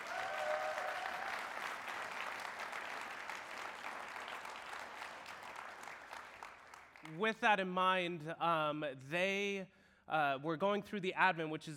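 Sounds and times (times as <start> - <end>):
audience applause: 0.0 - 7.2
speech: 7.1 - 11.7.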